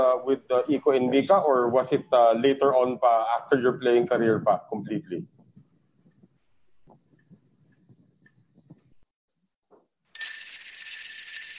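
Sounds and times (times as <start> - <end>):
speech: 0.2 - 5.4
bell ringing: 10.2 - 11.5.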